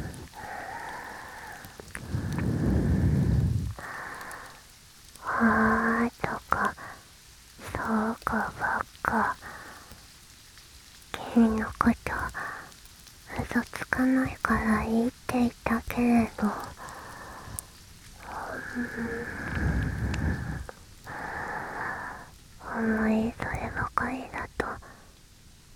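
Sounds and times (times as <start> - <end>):
ear licking: 0.0 - 5.2, 16.3 - 22.4
rain: 0.0 - 25.7.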